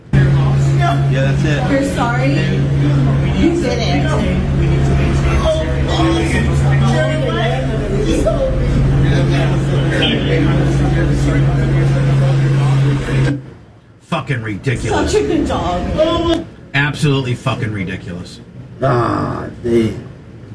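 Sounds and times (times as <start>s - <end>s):
helicopter flying overhead: 0.1s - 13.3s
speech: 0.9s - 4.8s, 14.1s - 20.1s.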